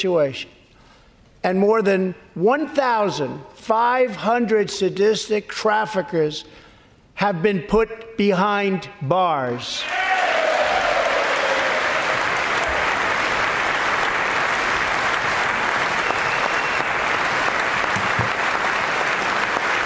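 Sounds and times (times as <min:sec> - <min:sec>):
speech: 0:00.0 - 0:00.6, 0:01.4 - 0:06.6, 0:07.2 - 0:10.1
audience applause: 0:09.8 - 0:19.8.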